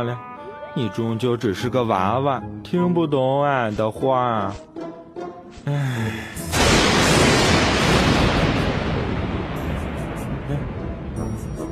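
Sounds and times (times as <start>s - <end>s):
speech: 0.0s - 4.7s, 5.6s - 6.5s
thunder cracking and rumbling before rain: 6.5s - 11.7s.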